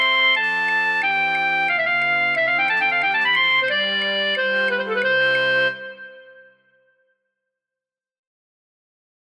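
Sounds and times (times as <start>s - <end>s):
flute choir: 0.0s - 6.9s.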